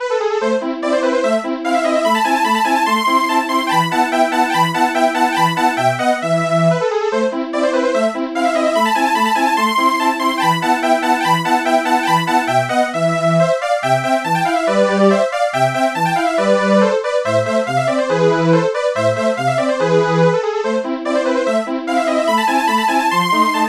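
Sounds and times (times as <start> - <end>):
polyphonic synthesizer: 0.0 - 23.6.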